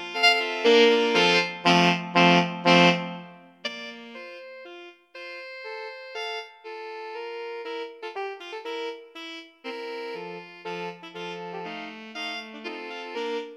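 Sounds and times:
alto saxophone choir: 0.0 - 13.5.

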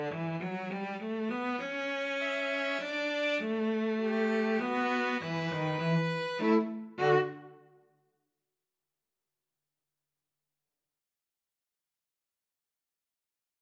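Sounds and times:
cello: 0.0 - 7.6
two violins: 0.0 - 7.6.

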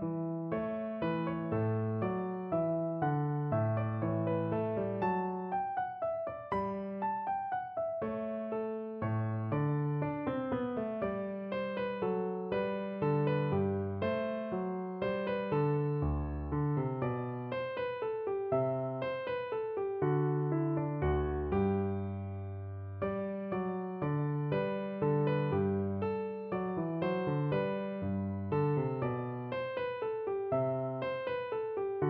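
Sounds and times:
classical minuet on piano: 0.0 - 32.0.

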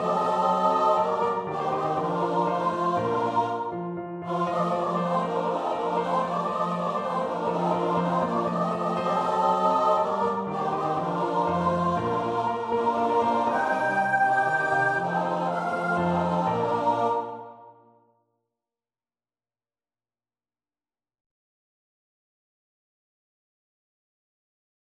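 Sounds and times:
choir singing a mass movement: 0.0 - 17.9.

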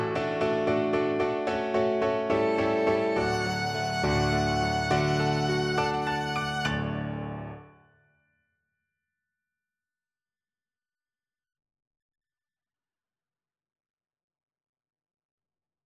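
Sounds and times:
violin playing a romantic song arrangement: 0.0 - 7.6.

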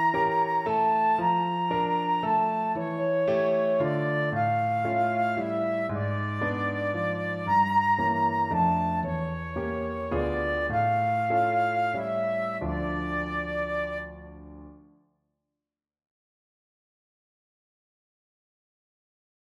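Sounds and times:
flute playing a classical aria: 0.0 - 14.7.

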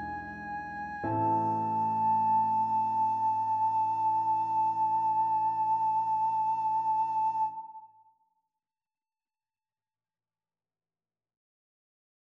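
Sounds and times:
recorder: 0.0 - 7.8.

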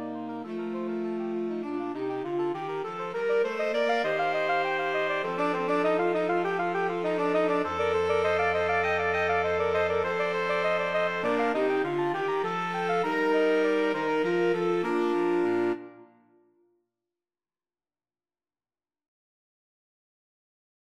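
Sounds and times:
saxophone quartet playing: 0.0 - 16.3.

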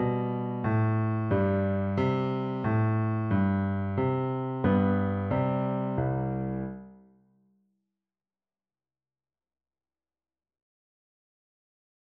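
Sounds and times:
piano duet: 0.0 - 7.0.

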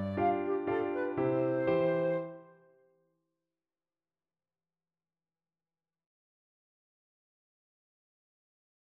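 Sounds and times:
flute: 0.0 - 2.8.

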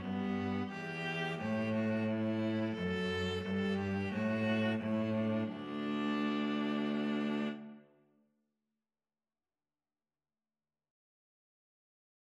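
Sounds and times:
viola and cello duet: 0.0 - 7.8.

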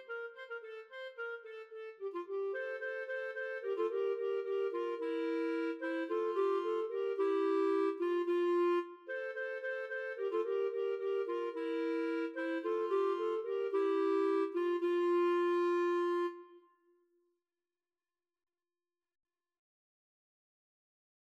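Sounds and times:
clarinet trio: 0.0 - 16.6.

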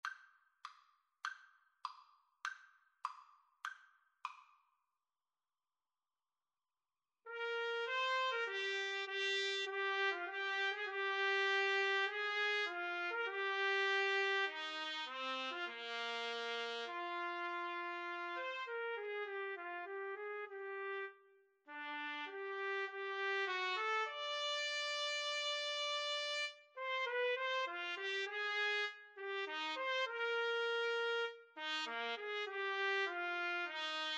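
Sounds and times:
trumpet duet: 7.3 - 34.1.

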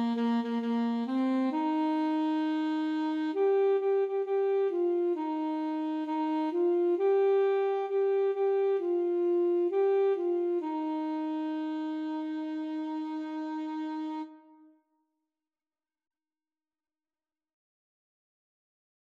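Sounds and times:
clarinet: 0.0 - 14.8
saxophone: 0.0 - 14.8.

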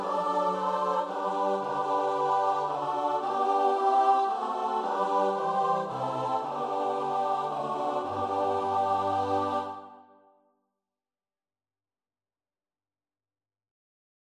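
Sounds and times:
choir singing: 0.0 - 10.4.

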